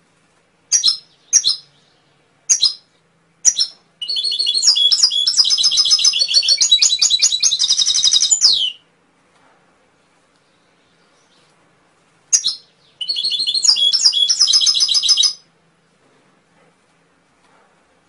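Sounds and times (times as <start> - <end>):
canary chirps and trill: 0.7 - 8.9, 12.3 - 15.5.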